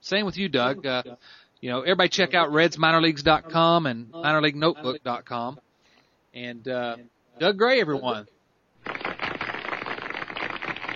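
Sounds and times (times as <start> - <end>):
speech: 0.0 - 5.7, 6.3 - 9.0
studio audience applause: 8.8 - 10.9.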